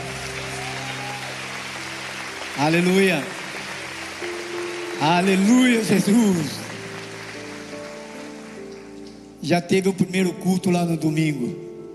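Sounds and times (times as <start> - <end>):
audience applause: 0.0 - 9.4
speech: 2.6 - 3.4, 5.0 - 6.6, 9.4 - 11.6.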